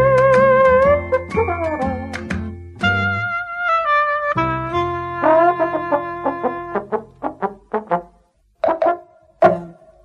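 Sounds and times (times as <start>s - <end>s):
theme music: 0.1s - 8.0s.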